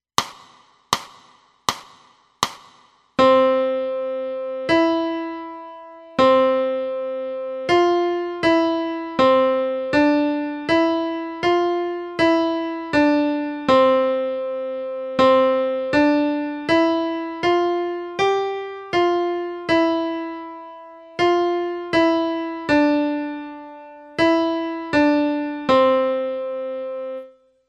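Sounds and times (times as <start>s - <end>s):
piano: 3.2s - 27.6s.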